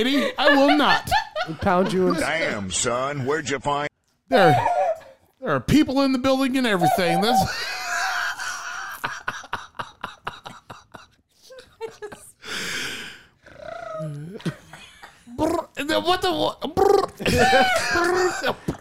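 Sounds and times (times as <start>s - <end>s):
laughter: 0.0s - 3.4s, 6.7s - 12.4s, 17.0s - 18.7s
speech: 0.0s - 4.8s, 5.4s - 7.7s, 15.9s - 18.7s
person imitating bird noises: 16.8s - 17.2s.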